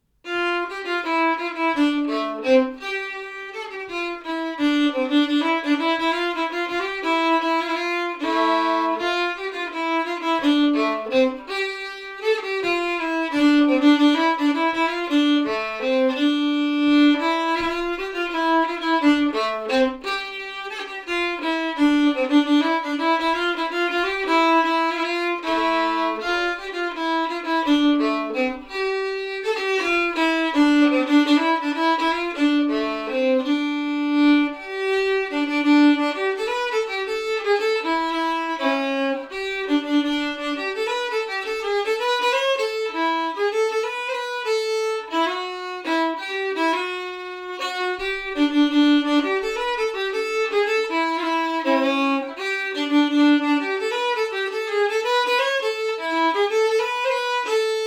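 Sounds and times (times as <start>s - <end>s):
fetpolska folk tune part: 0.0s - 57.8s.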